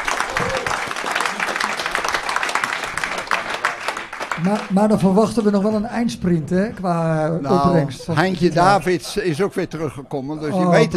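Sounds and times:
audience applause: 0.0s - 5.2s
speech: 4.4s - 10.9s.

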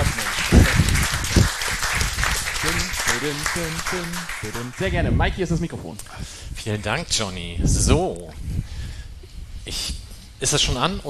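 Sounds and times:
crowd applause: 0.0s - 5.1s
voices chattering: 0.0s - 5.8s
speech: 3.2s - 8.5s, 9.7s - 11.0s.

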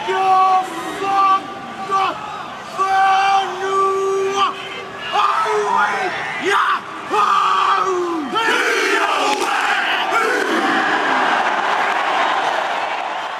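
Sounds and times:
crowd roaring at an international rugby match: 0.0s - 13.3s
rugby team chanting a war chant: 4.9s - 12.8s.

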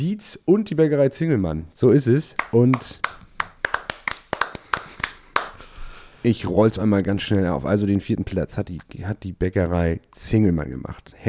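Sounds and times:
speech: 0.0s - 3.2s, 6.2s - 11.2s
scattered applause for four bakery finalists in a Stollen contest: 2.4s - 5.6s.

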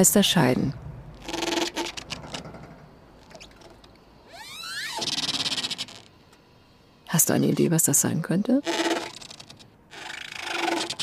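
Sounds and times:
speech: 0.0s - 0.8s, 7.2s - 8.8s
air-filled boat fenders squeaking between moored ships: 1.2s - 6.4s, 8.6s - 11.0s.

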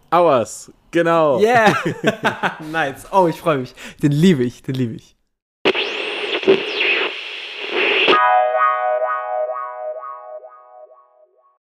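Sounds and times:
speech: 0.1s - 5.2s
laughter: 1.5s - 2.8s
electronic film soundtrack piece with buzzy synth: 5.7s - 11.4s.

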